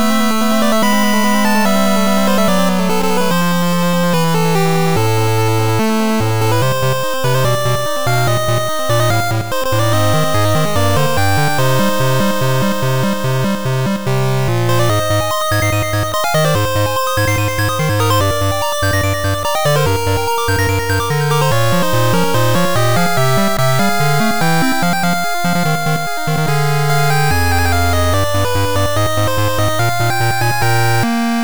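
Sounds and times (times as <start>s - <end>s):
8-bit music: 0.0s - 31.4s.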